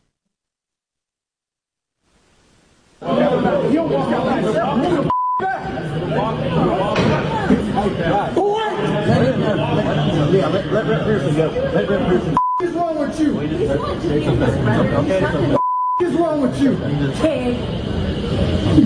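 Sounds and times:
loud crowd chatter: 0:03.0 - 0:18.8
censor bleeps over swearing: 0:05.1 - 0:05.4, 0:12.4 - 0:12.7, 0:15.6 - 0:16.1.

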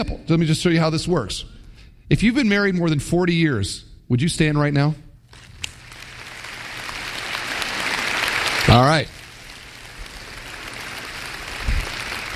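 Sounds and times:
speech: 0:00.0 - 0:05.0, 0:08.7 - 0:09.2
audience applause: 0:05.4 - 0:12.3.

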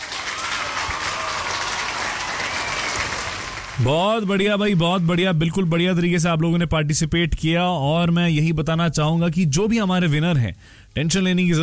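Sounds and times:
applause: 0:00.0 - 0:05.1
speech: 0:03.8 - 0:11.6.

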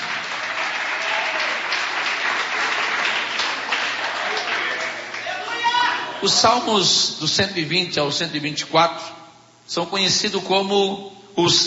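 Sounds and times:
audience applauding: 0:00.0 - 0:06.0
speech: 0:06.2 - 0:11.6.

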